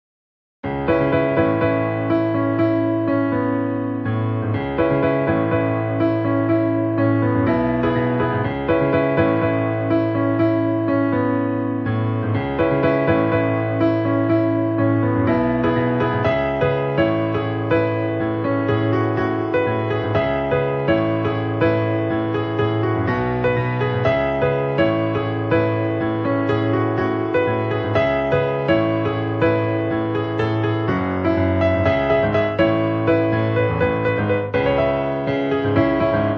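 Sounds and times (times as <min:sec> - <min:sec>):
piano music: 0:00.6 - 0:36.3.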